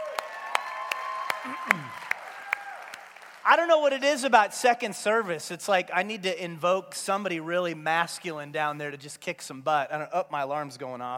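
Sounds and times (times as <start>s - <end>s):
thin scattered audience applause: 0.0s - 4.0s
speech: 1.4s - 2.1s, 3.4s - 11.1s.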